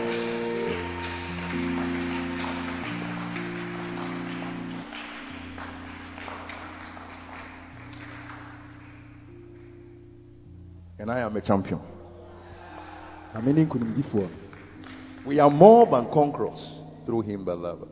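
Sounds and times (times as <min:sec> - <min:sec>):
audience clapping: 0:00.0 - 0:09.8, 0:12.7 - 0:16.5
sustained keyboard chords: 0:00.0 - 0:17.9
speech: 0:11.0 - 0:11.9, 0:13.4 - 0:14.4, 0:15.2 - 0:17.9.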